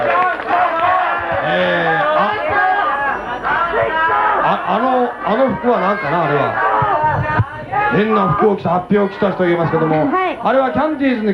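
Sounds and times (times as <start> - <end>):
audience applause: 0.0 - 7.1
speech: 4.6 - 6.6, 7.4 - 11.3.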